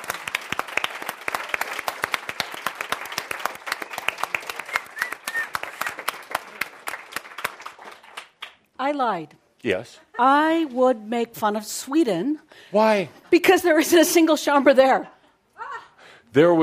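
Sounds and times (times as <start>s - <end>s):
round of applause: 0.0s - 8.6s
speech: 8.9s - 15.2s, 16.4s - 16.6s.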